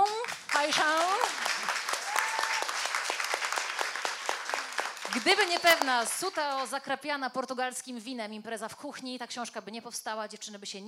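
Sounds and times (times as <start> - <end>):
audience applause: 0.2 - 6.6
speech: 5.2 - 10.8.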